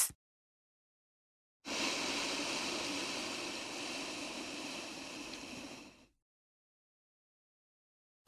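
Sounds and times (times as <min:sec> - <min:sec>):
alternate nostril breathing: 0:01.7 - 0:06.2.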